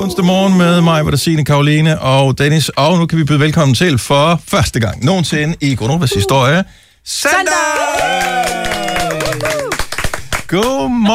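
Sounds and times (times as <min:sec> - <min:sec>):
speech: 0:00.0 - 0:09.7, 0:10.5 - 0:11.1
people clapping in the studio: 0:07.4 - 0:11.1.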